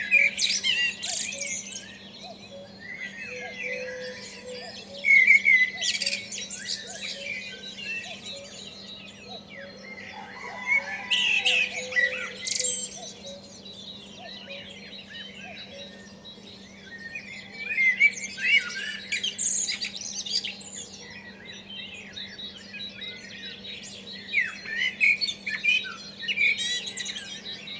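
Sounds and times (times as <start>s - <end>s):
garden birds in Douai Hauts de France: 0.0s - 27.7s.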